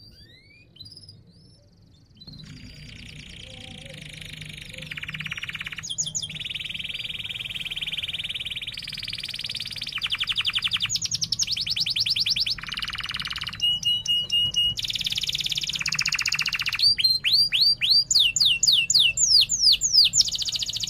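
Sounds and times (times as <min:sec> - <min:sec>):
canary song: 0:00.0 - 0:20.8.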